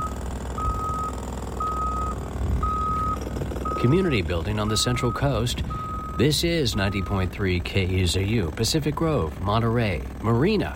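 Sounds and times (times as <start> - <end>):
reversing beeps from construction tractors backing up: 0.0 - 4.0, 4.7 - 7.3
constant low engine rumble of construction tractors: 0.0 - 10.7
speech: 3.8 - 10.7.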